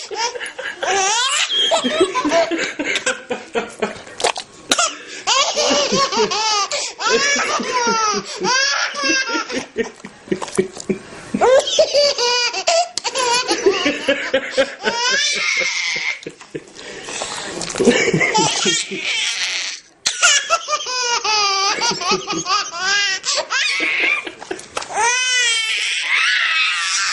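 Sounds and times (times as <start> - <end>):
child laughing: 0.0 - 3.2, 5.3 - 10.7, 11.4 - 16.5, 17.9 - 19.5, 20.1 - 26.4
adult laughing: 0.0 - 4.1, 5.3 - 12.2, 13.1 - 16.7, 17.8 - 19.2, 20.2 - 24.8.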